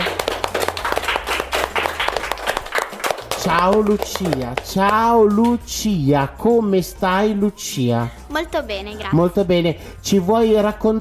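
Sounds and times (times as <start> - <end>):
audience applause: 0.0 - 4.7
speech: 3.4 - 10.9.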